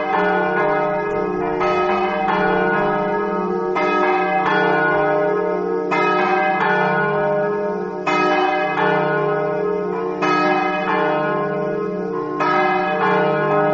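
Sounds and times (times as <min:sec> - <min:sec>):
bells ringing: 0:00.0 - 0:13.7.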